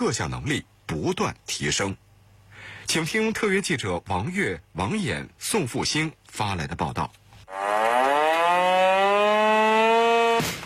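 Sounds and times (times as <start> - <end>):
speech: 0.0 - 7.7
urgent alarm siren sounding across army camp: 7.5 - 10.6.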